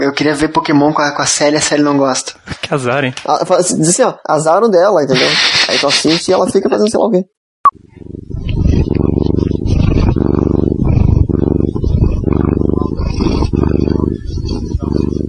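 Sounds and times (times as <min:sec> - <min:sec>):
speech: 0:00.0 - 0:08.1
cat purring: 0:07.7 - 0:15.2.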